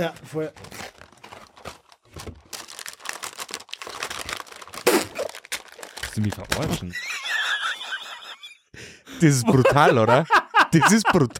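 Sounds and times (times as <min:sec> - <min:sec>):
speech: 0:00.0 - 0:00.8, 0:06.2 - 0:07.1, 0:09.2 - 0:11.3
large Toblerone package wrapper crinkling: 0:00.0 - 0:06.8
laughter: 0:06.8 - 0:11.3.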